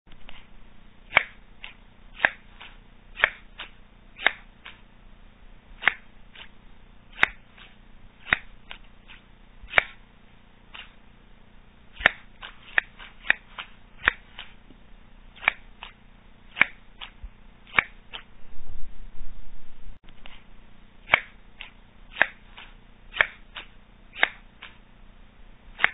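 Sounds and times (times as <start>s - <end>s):
scissors cutting slowly: 0.1s - 0.5s, 1.1s - 4.9s, 5.8s - 10.0s, 10.7s - 11.0s, 11.9s - 18.3s, 20.1s - 24.8s, 25.7s - 25.9s.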